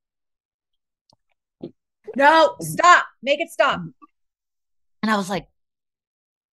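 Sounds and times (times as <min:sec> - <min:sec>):
person imitating loud gulping of water: 0:01.6 - 0:01.8
speech: 0:01.6 - 0:04.1, 0:05.0 - 0:05.5.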